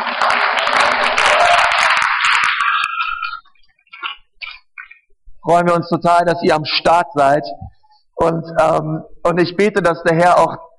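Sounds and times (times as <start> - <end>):
crowd clapping: 0.0 - 5.0
speech: 5.5 - 10.7.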